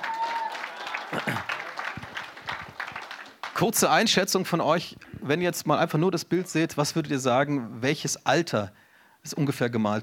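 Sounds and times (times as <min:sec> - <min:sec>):
audience applause: 0:00.0 - 0:04.0
speech: 0:01.1 - 0:01.6, 0:03.6 - 0:10.0.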